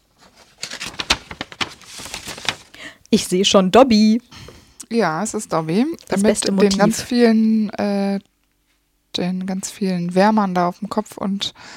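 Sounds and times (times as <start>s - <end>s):
fan mail envelope being opened: 0.2s - 2.8s
speech: 3.1s - 4.3s, 4.9s - 8.3s, 9.2s - 11.7s.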